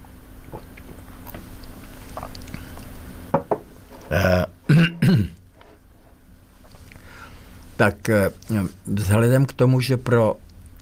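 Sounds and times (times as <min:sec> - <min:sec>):
sipping tea: 0:00.5 - 0:03.1
speech: 0:04.1 - 0:04.5, 0:07.8 - 0:10.8.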